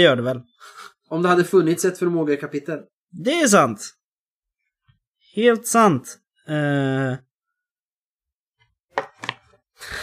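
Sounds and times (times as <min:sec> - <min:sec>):
speech: 0:00.0 - 0:04.0, 0:05.3 - 0:07.3
book pages flipping: 0:09.0 - 0:09.6.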